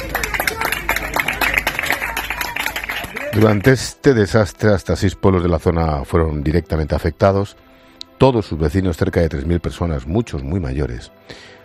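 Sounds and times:
crowd clapping: 0:00.0 - 0:04.0
speech: 0:03.4 - 0:07.6, 0:08.2 - 0:11.6.

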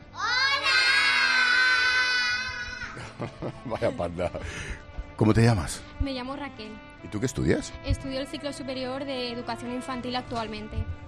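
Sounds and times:
group of children shouting a welcome cheer: 0:00.2 - 0:03.1
laughter: 0:02.4 - 0:04.8
speech: 0:03.2 - 0:11.0.

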